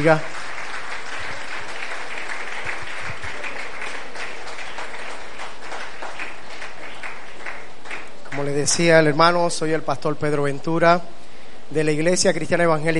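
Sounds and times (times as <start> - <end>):
speech: 0.0 - 0.3, 8.4 - 12.9
church audience applause: 0.0 - 9.0.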